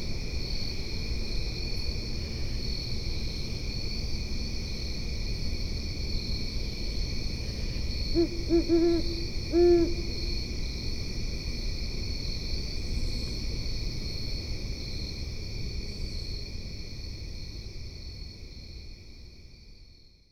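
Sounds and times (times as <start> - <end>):
insect drone: 0.0 - 20.3
great horned owl hoot: 8.1 - 10.4.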